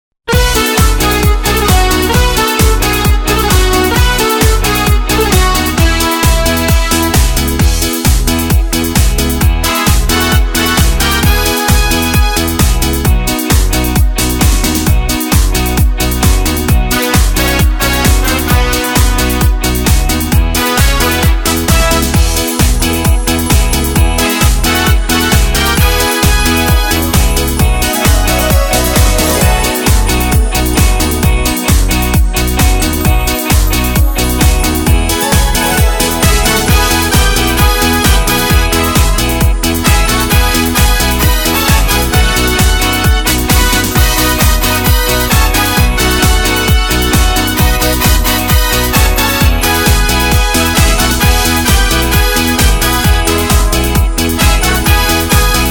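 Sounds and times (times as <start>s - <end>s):
Korg Pa3X arranger keyboard: 0.3s - 55.6s.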